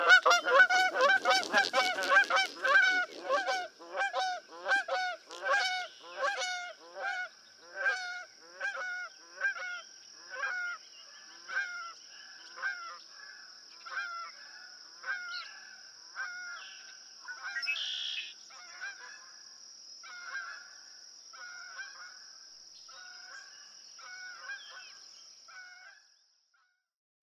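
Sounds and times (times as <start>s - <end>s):
Canada goose: 0.0s - 15.6s, 17.2s - 19.3s, 21.4s - 22.2s, 22.9s - 26.1s.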